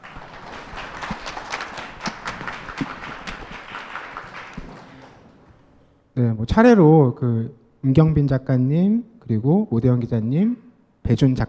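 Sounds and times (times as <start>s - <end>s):
audience applause: 0.0s - 5.5s
speech: 6.2s - 11.4s.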